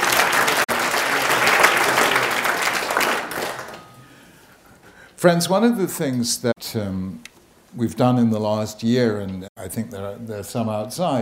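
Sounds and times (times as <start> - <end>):
audience round of applause: 0.0 - 4.0
speech: 5.2 - 11.2.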